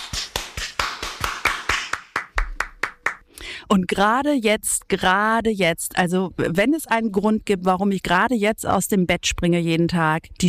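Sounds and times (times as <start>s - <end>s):
hand clapping: 0.0s - 3.3s
speech: 3.7s - 10.4s.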